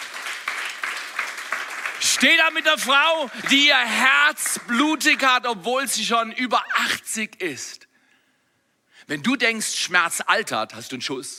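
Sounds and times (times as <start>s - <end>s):
audience applause: 0.0s - 5.3s
speech: 2.0s - 7.9s, 9.1s - 11.3s.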